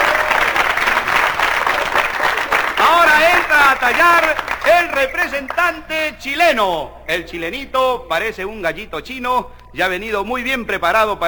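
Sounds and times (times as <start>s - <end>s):
audience applauding during a comedy routine: 0.0s - 5.8s
speech: 3.8s - 11.2s.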